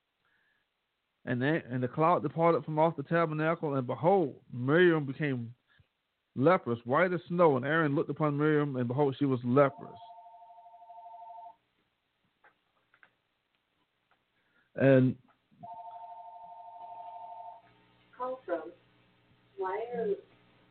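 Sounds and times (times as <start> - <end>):
speech: 1.3 - 5.6, 6.4 - 10.1, 14.8 - 15.2
telephone ringing: 9.6 - 11.6, 15.6 - 17.8.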